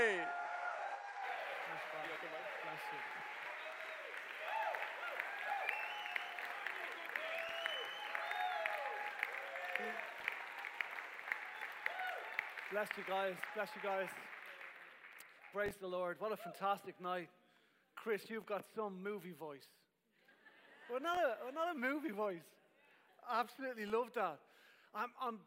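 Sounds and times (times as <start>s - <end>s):
crowd cheering: 0.0s - 15.1s
speech: 2.2s - 3.4s, 9.8s - 10.1s, 12.7s - 14.4s, 15.5s - 17.4s, 18.0s - 19.8s, 20.9s - 22.6s, 23.2s - 25.4s.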